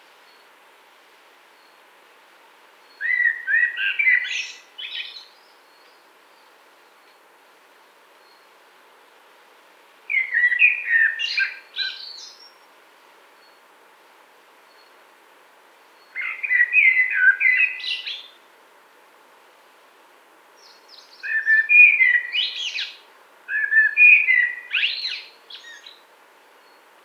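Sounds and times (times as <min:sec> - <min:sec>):
Eurasian blackbird song phrase: 0:02.9 - 0:05.9, 0:10.1 - 0:12.5, 0:16.0 - 0:18.4, 0:20.6 - 0:26.0.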